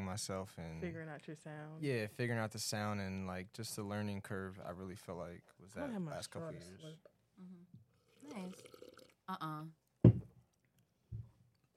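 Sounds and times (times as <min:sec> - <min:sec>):
speech: 0:00.2 - 0:10.2
slurping a drink into the mic: 0:08.0 - 0:09.2.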